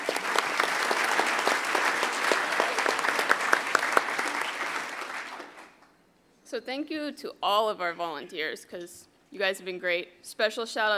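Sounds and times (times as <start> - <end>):
audience applause: 0.0 - 5.8
speech: 6.6 - 10.9.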